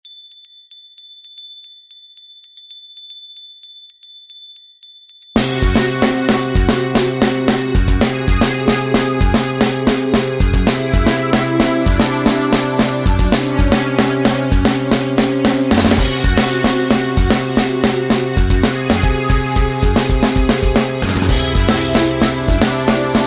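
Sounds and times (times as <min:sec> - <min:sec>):
instrumental music: 0:05.1 - 0:23.2.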